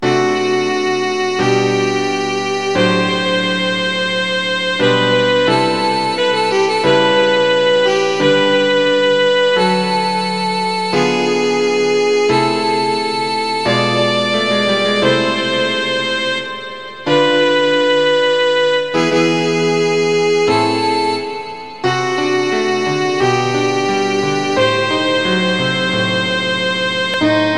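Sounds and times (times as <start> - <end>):
piano: 0.0 - 27.5
violin: 0.0 - 27.5.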